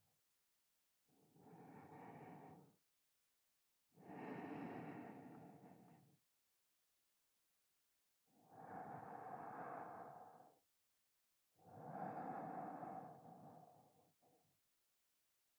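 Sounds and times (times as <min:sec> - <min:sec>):
person breathing in sleep: 0:01.4 - 0:02.6, 0:04.0 - 0:06.0, 0:08.5 - 0:10.6, 0:11.7 - 0:13.9.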